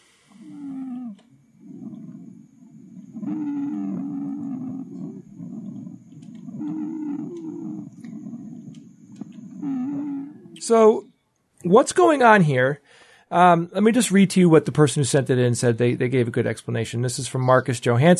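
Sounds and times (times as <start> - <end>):
wheezing lung sounds from narrowed airways: 0.0 - 10.6
speech: 10.7 - 18.1.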